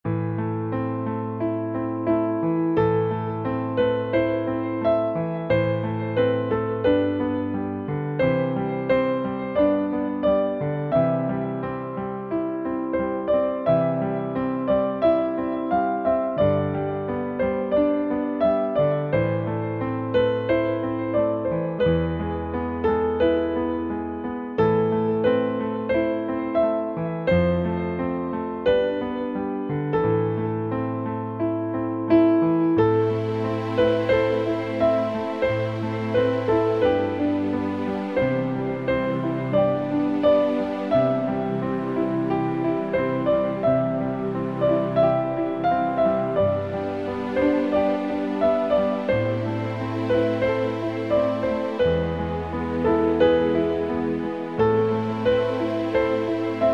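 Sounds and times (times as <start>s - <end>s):
piano carol: 0.0s - 56.7s.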